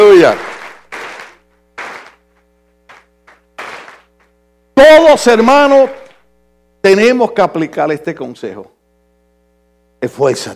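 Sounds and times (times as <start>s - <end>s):
audience applause: 0.0s - 2.2s, 2.9s - 4.1s
speech: 0.2s - 0.5s, 4.8s - 6.0s, 6.8s - 8.7s, 10.0s - 10.5s.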